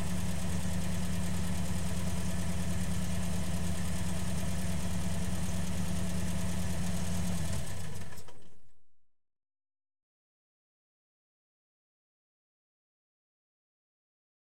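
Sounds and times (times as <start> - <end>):
car engine switching on outdoors: 0.0 - 8.7.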